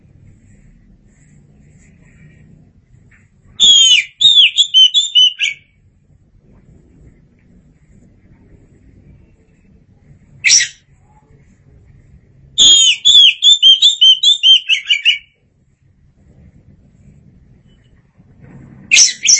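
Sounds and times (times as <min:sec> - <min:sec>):
faint low hum: 0:00.0 - 0:19.3
Oriental magpie-robin song: 0:03.6 - 0:05.7, 0:12.6 - 0:15.3, 0:18.9 - 0:19.3.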